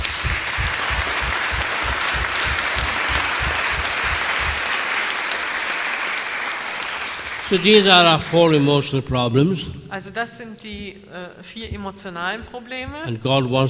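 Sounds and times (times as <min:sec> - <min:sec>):
audience applause: 0:00.0 - 0:08.7
speech: 0:07.5 - 0:13.6.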